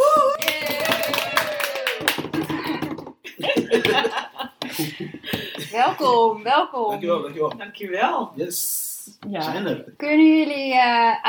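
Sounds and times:
hosts' applause for guests: 0.4 - 2.8
laughter: 2.4 - 6.0
speech: 3.7 - 11.2.

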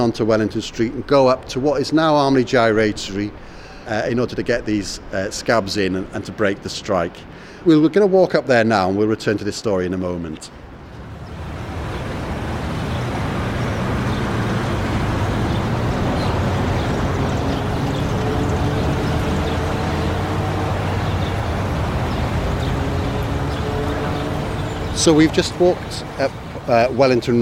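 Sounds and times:
speech: 0.0 - 10.6, 25.0 - 27.3
street traffic by Armley Gyratory roundabout: 0.0 - 27.3.

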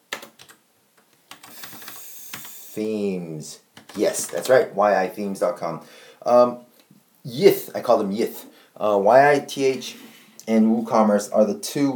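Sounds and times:
computer keyboard typing: 0.1 - 0.6, 1.3 - 2.8, 3.8 - 4.6
speech: 2.8 - 11.9.

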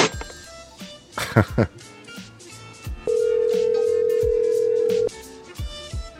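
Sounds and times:
music: 0.0 - 6.1
laughter: 1.2 - 1.8
telephone tone: 3.1 - 5.1.

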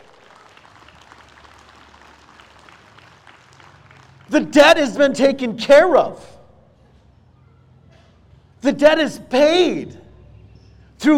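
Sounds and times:
audience clapping: 0.0 - 4.5
speech: 4.3 - 6.4, 8.6 - 10.0.

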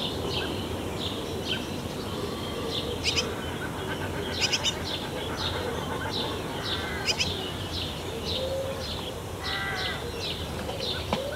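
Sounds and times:
birds chirping and tweeting around a nest box: 0.0 - 11.3.

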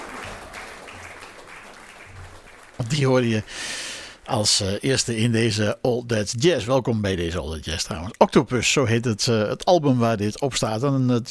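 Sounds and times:
applause for a jazz orchestra: 0.0 - 4.3
speech: 2.8 - 11.2.

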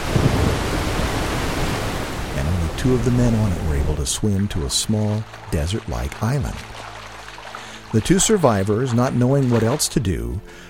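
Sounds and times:
heavy rain in a storm at sea: 0.0 - 3.9
speech: 2.8 - 6.9, 7.9 - 10.6.

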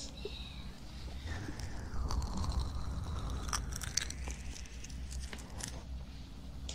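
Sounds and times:
steady low rumble: 0.2 - 6.6.

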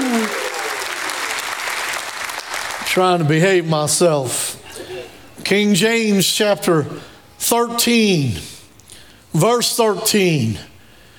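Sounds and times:
audience clapping: 0.0 - 3.4
speech: 2.9 - 4.6, 5.4 - 8.5, 9.3 - 10.7.

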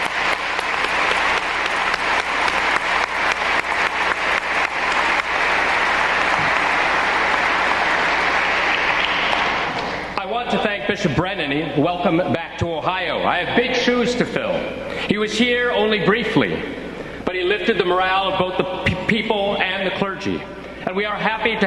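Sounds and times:
audience applause: 0.0 - 10.2
speech: 11.0 - 16.9, 17.5 - 21.6.

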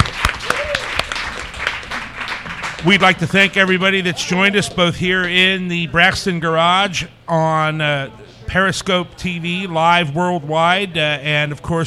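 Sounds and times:
audience round of applause: 0.0 - 3.8
speech: 2.8 - 11.8.

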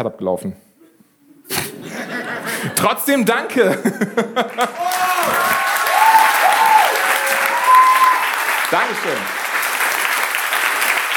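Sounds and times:
speech: 0.0 - 0.7, 2.6 - 5.5, 8.7 - 9.4
laughter: 1.5 - 5.5
audience applause: 4.4 - 11.1.

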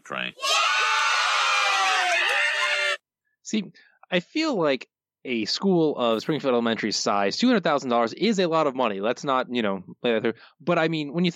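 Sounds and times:
speech: 0.1 - 0.6, 3.5 - 11.3
crowd of children cheering and shouting: 0.4 - 3.0.

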